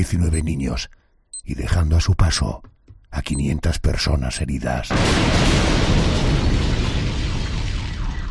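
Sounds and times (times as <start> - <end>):
speech: 0.0 - 6.5
bomb explosion: 4.9 - 8.2.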